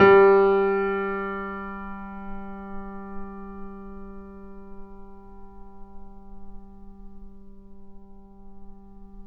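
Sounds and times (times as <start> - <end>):
grand piano recorded off mic: 0.0 - 9.2.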